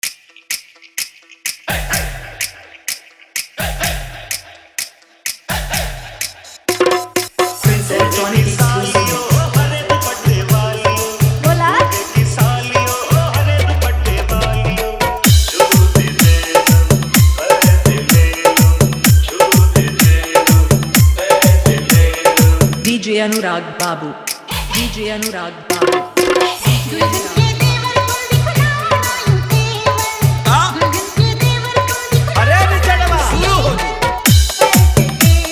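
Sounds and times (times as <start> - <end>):
hard dholak drumming mix: 0.0 - 35.5.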